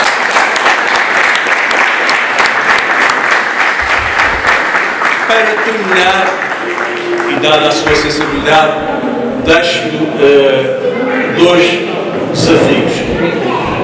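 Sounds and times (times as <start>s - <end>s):
audience applause: 0.0s - 8.8s
speech: 5.4s - 13.4s.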